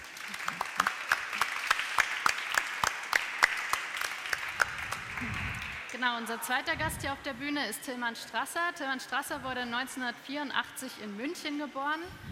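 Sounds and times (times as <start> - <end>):
small audience clapping: 0.0 - 6.0
speech: 5.2 - 12.2.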